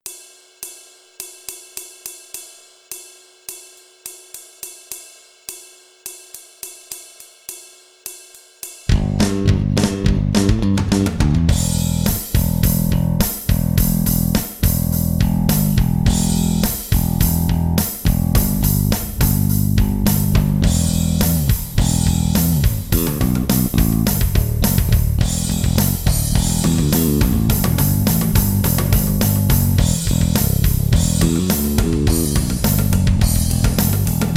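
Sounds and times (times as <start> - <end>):
bass guitar: 8.9 - 34.3.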